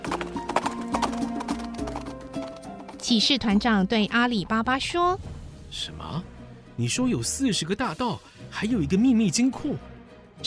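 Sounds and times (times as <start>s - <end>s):
horse galloping, hooves clip-clopping: 0.0s - 4.5s
speech: 3.0s - 10.4s.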